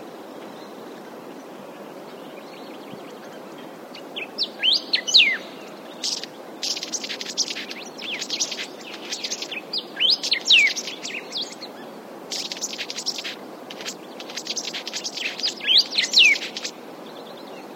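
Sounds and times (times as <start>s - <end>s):
red-tailed comet Sappho sparganura singing: 4.2s - 11.7s, 12.3s - 16.7s.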